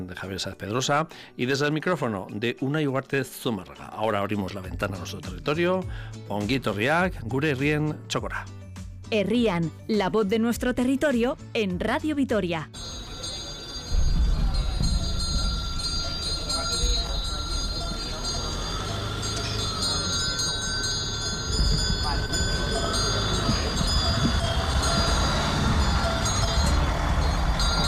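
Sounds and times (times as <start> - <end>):
speech: 0.0 - 12.9
car bustle in the cuadrilla de Añana: 12.8 - 27.8
livestock cowbells at fair: 12.8 - 27.8.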